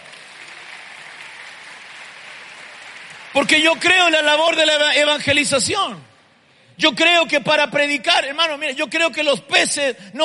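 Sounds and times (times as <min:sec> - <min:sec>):
crowd applause: 0:00.0 - 0:04.6
speech: 0:03.3 - 0:06.1, 0:06.8 - 0:10.2.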